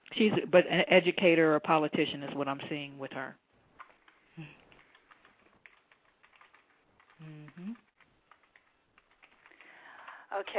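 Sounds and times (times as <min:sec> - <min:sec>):
speech: 0:00.2 - 0:03.4, 0:04.4 - 0:04.6, 0:07.2 - 0:07.8, 0:10.3 - 0:10.5
keyboard typing in a chat room: 0:03.8 - 0:10.5
person humming: 0:04.4 - 0:04.6, 0:07.2 - 0:07.8.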